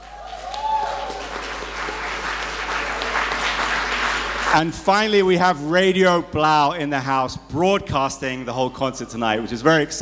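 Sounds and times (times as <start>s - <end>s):
audience applause: 0.0s - 5.2s
speech: 4.5s - 10.0s.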